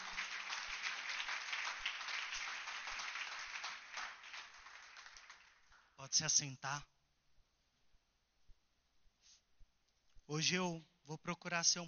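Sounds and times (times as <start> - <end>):
audience applause: 0.0 - 5.7
speech: 6.0 - 6.9, 10.3 - 11.8.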